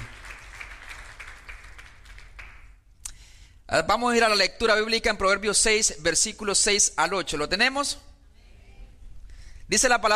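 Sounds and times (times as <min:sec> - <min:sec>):
audience applause: 0:00.0 - 0:02.6
speech: 0:03.7 - 0:08.1, 0:09.7 - 0:10.1.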